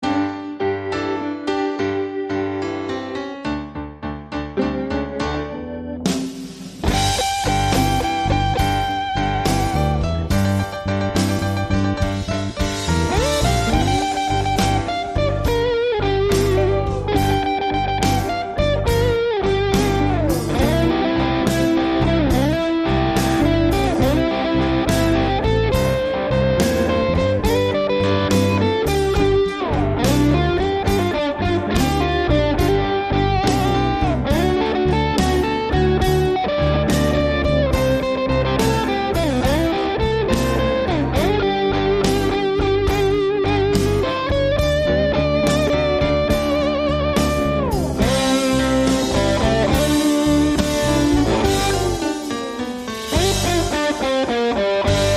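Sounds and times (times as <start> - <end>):
blues music: 0.0 - 55.1.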